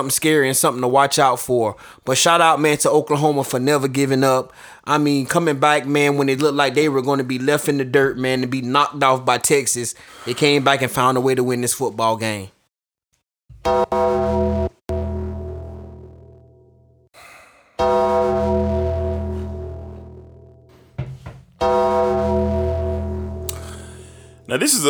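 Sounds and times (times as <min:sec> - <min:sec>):
speech: 0:00.0 - 0:12.6, 0:13.6 - 0:14.1, 0:24.6 - 0:24.8
deep bell tolling: 0:13.7 - 0:17.0, 0:17.8 - 0:24.5.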